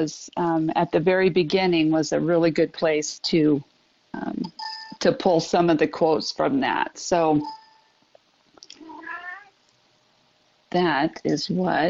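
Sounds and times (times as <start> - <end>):
speech: 0.0 - 7.6, 10.7 - 11.8
pet cat meowing: 8.8 - 9.6.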